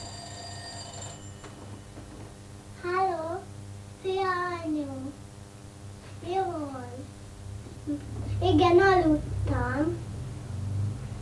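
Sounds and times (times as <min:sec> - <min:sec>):
telephone ringing: 0:00.0 - 0:02.8
low hum: 0:00.0 - 0:11.1.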